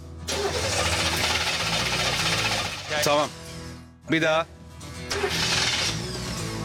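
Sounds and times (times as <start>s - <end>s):
engine cranking trying to start: 0.3s - 3.3s, 5.1s - 6.0s
speech: 3.0s - 3.4s, 4.1s - 5.5s.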